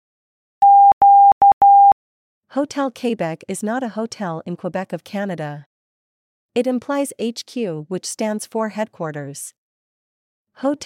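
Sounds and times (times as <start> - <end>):
Morse code beeps: 0.6 - 2.0
speech: 2.5 - 5.7, 6.6 - 9.6, 10.6 - 10.8.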